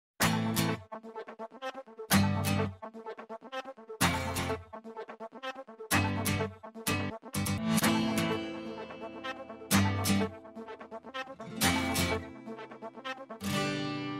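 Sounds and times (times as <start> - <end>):
guitar: 0.2 - 1.2, 2.1 - 2.8, 4.0 - 4.6, 5.9 - 14.1.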